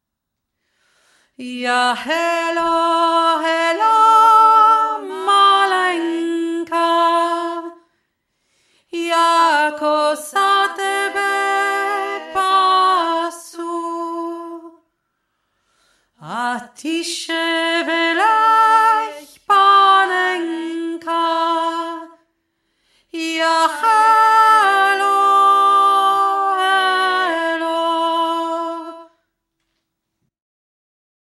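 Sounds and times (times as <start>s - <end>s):
upper vocal part singing: 1.4s - 7.9s, 8.9s - 14.8s, 16.2s - 22.2s, 23.1s - 29.2s.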